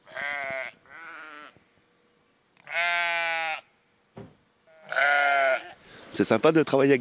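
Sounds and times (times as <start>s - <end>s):
sheep bleating: 0.0s - 1.6s, 2.6s - 3.7s, 4.7s - 5.8s
short knock: 4.2s - 4.4s
speech: 6.2s - 7.0s.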